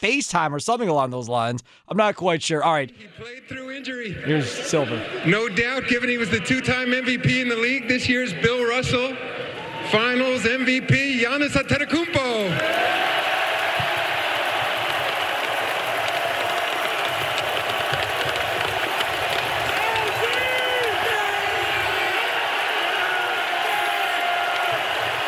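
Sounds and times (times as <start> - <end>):
speech: 0.0 - 13.1
arena crowd cheering: 3.2 - 25.2
arena crowd chanting: 12.6 - 25.2.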